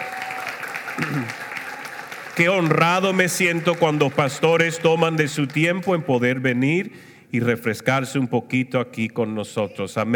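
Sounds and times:
audience applause: 0:00.0 - 0:06.0
speech: 0:01.0 - 0:01.5, 0:02.4 - 0:10.1.

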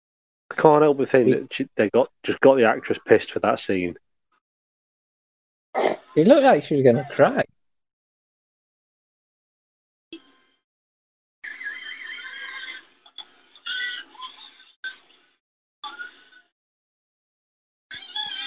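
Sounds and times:
speech: 0:00.6 - 0:04.0, 0:05.8 - 0:07.6
pig squealing and oinking: 0:11.5 - 0:12.8.

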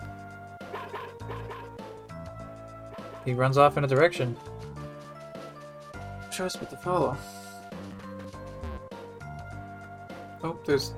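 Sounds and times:
dog barking: 0:00.6 - 0:01.8, 0:03.0 - 0:03.3
speech: 0:03.2 - 0:04.6, 0:06.4 - 0:07.4, 0:10.4 - 0:10.9.

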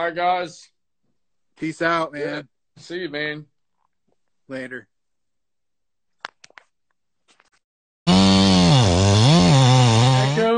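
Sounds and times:
speech: 0:00.0 - 0:00.8, 0:01.6 - 0:03.5, 0:04.5 - 0:04.9
custom-built chainsaw running: 0:08.1 - 0:10.5.

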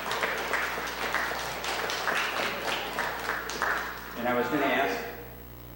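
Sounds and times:
audience round of applause: 0:00.0 - 0:04.7
speech: 0:04.2 - 0:05.1.

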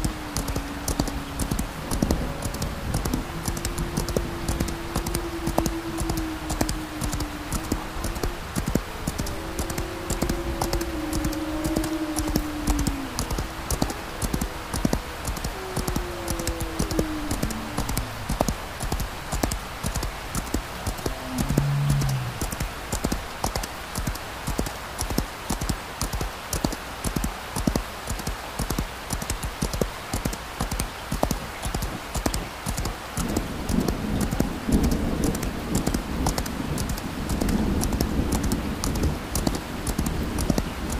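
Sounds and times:
deep rolling thunder: 0:00.0 - 0:23.3, 0:33.2 - 0:40.9
wavering creaks: 0:00.0 - 0:23.7
horse walking clip-clop: 0:00.0 - 0:40.9
light rain: 0:00.0 - 0:40.9.

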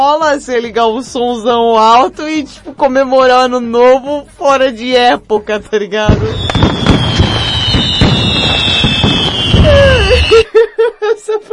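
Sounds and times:
speech: 0:00.0 - 0:06.4, 0:10.8 - 0:11.5
fireworks exploding: 0:06.0 - 0:10.6
high whistling tone: 0:06.1 - 0:10.5
laughter: 0:09.4 - 0:11.5.

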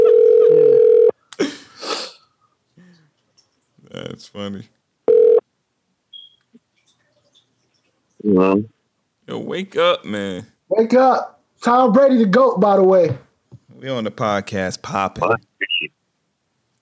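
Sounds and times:
phone call ringback tones: 0:00.0 - 0:01.1, 0:05.1 - 0:05.4
speech: 0:04.2 - 0:04.8, 0:08.2 - 0:13.2, 0:13.8 - 0:15.9.

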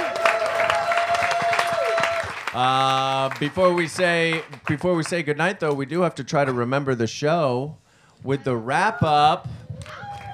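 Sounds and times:
audience applause: 0:00.0 - 0:04.9
speech: 0:02.6 - 0:10.0.

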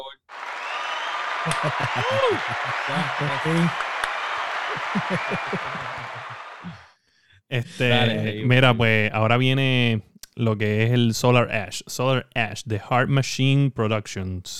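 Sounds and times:
crowd applause: 0:00.3 - 0:06.9
laughter: 0:01.3 - 0:06.8, 0:07.6 - 0:09.0
speech: 0:01.4 - 0:03.9, 0:04.8 - 0:06.9, 0:07.5 - 0:14.5.

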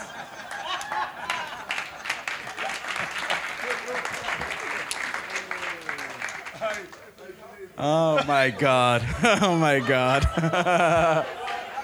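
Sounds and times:
audience applause: 0:00.0 - 0:07.4
laughter: 0:00.0 - 0:11.8
speech: 0:07.8 - 0:11.4.

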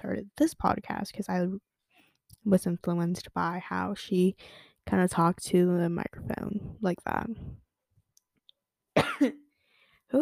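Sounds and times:
speech: 0:00.2 - 0:01.7, 0:02.4 - 0:07.6, 0:09.2 - 0:09.4
person coughing from candle smoke: 0:09.0 - 0:09.4.

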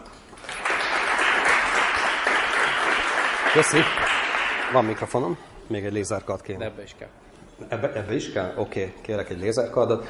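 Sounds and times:
audience applause: 0:00.4 - 0:05.1
speech: 0:03.6 - 0:04.1, 0:04.7 - 0:10.0.

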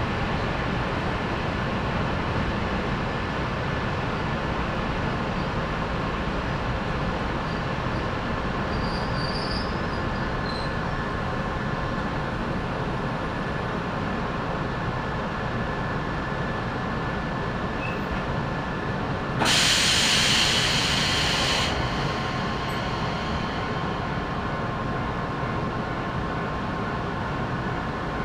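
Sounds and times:
train rumble on the Sangi Railway: 0:00.0 - 0:28.2
train wheel squeal: 0:08.7 - 0:10.8.

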